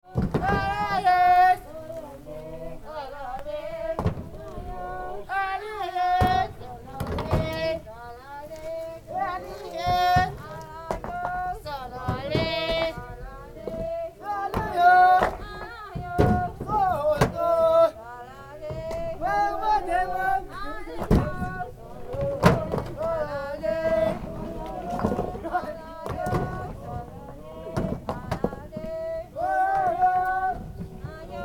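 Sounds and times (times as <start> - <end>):
workers singing a work song loading a lorry in Ladakh India: 0.0 - 31.4.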